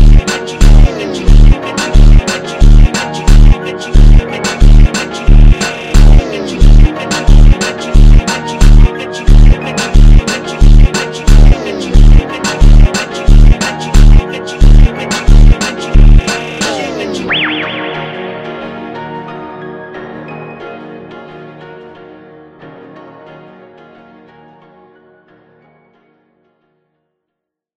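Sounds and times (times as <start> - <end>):
funk piano: 0.0 - 21.1.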